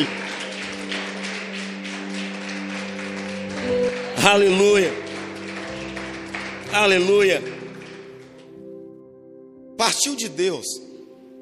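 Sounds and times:
speech: 0.0 - 0.2, 4.2 - 5.0, 6.8 - 7.6, 9.8 - 10.9
audience applauding: 0.0 - 8.7.

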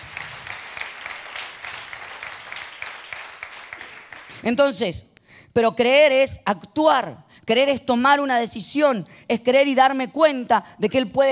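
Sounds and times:
audience applause: 0.0 - 4.4
speech: 4.4 - 11.3.

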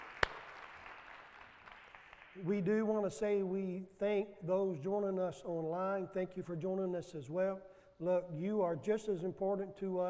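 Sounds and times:
audience hand clap of appreciation: 0.0 - 2.5
speech: 2.4 - 10.0.

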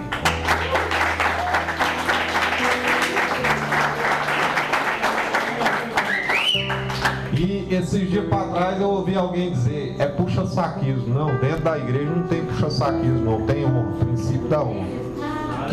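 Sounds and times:
warm applause: 0.0 - 7.4
speech: 7.9 - 15.7.

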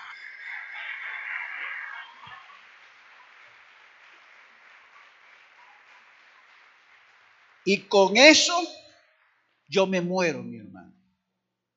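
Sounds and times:
crowd applauding: 0.0 - 10.1
speech: 7.6 - 8.8, 9.7 - 10.9.

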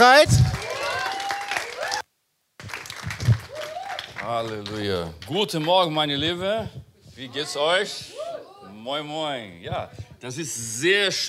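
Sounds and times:
audience applause: 0.0 - 2.0, 2.6 - 5.4
speech: 4.3 - 8.2, 8.8 - 11.2.

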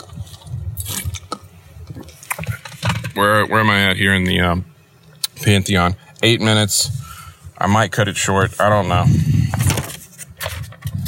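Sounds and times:
person sipping a beverage: 0.0 - 2.6
speech: 3.2 - 4.7, 5.4 - 9.8.

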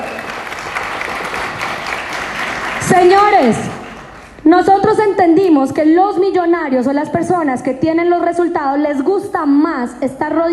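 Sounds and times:
audience applause: 0.0 - 4.4
speech: 2.9 - 3.8, 4.5 - 10.5.

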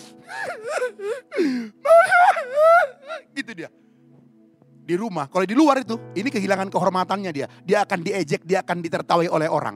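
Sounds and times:
person imitating sobbing: 0.3 - 3.5
speech: 0.8 - 1.8, 3.5 - 3.9, 4.9 - 9.7.

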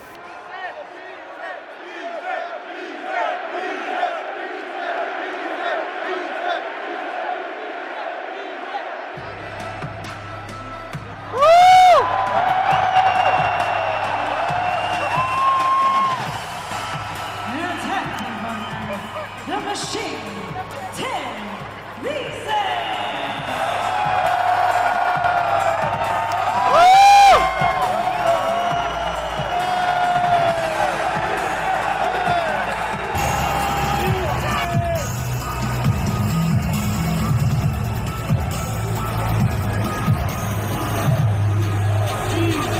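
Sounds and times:
crowd cheering: 0.0 - 42.7
pounding bass-heavy wrestler's entrance theme: 9.2 - 22.1, 22.7 - 42.7
people whooping: 11.3 - 20.4, 23.0 - 35.2.

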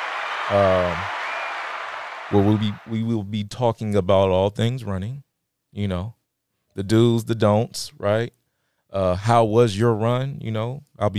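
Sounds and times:
applause: 0.0 - 3.1
speech: 0.5 - 1.2, 2.3 - 6.2, 6.8 - 11.1.

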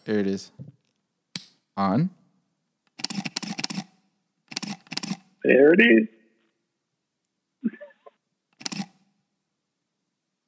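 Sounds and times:
speech: 0.1 - 0.8, 1.8 - 2.2, 5.4 - 6.2
M10 camera shutter clicking: 3.0 - 5.3, 8.6 - 9.0.

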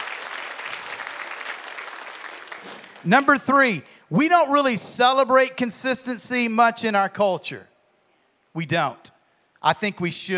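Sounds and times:
audience applause: 0.0 - 3.1
speech: 2.6 - 7.7, 8.5 - 10.3.

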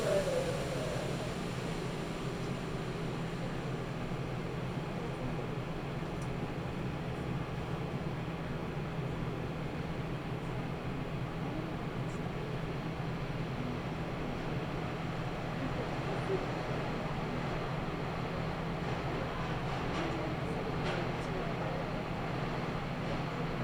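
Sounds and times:
low hum: 0.0 - 5.4
Nagoya Railroad Mikawa Line train rumble: 0.0 - 23.6.

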